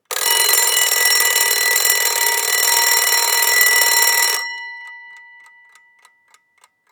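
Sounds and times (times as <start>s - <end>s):
short ring of a mechanical alarm clock: 0.0s - 6.7s.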